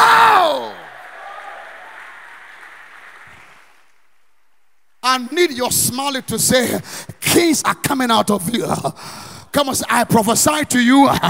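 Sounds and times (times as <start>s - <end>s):
audience applause: 0.4s - 4.0s
speech: 5.2s - 11.2s.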